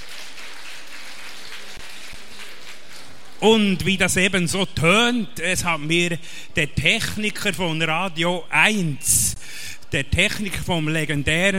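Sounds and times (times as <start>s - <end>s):
crowd applause: 0.0s - 3.4s
speech: 3.4s - 11.5s.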